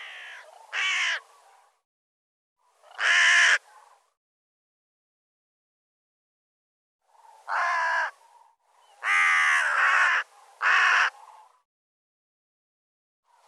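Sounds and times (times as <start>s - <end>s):
bird calling with hoarse caws: 0.0s - 1.3s, 2.8s - 4.0s, 7.2s - 11.6s.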